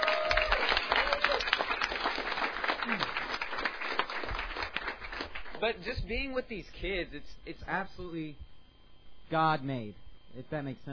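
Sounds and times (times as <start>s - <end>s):
audience applause: 0.0s - 5.6s
speech: 5.6s - 8.5s, 9.3s - 10.9s.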